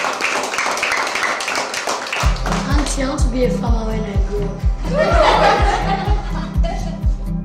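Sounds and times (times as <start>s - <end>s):
clapping: 0.0s - 3.2s
speech: 3.0s - 6.2s
laughter: 4.7s - 7.3s.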